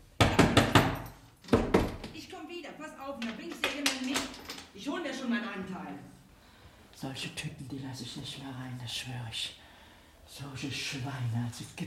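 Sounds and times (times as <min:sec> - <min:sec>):
door being shut: 0:00.2 - 0:02.2
speech: 0:02.6 - 0:06.2, 0:07.0 - 0:09.6, 0:10.3 - 0:11.8.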